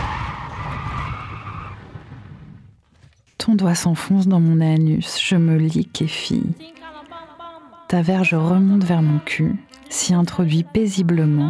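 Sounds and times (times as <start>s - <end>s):
vehicle braking to a stop: 0.0s - 2.7s
rushing road noise and low rumble: 0.0s - 2.9s
speech: 3.4s - 6.8s, 7.9s - 11.4s.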